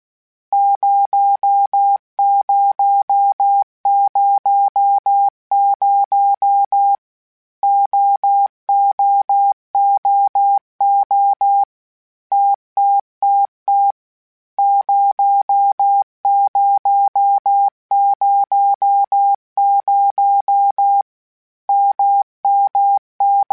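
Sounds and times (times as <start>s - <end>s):
Morse code CW code groups of basic letters: 0.6s - 7.0s, 7.6s - 11.7s, 12.3s - 14.0s, 14.6s - 21.0s, 21.7s - 23.5s.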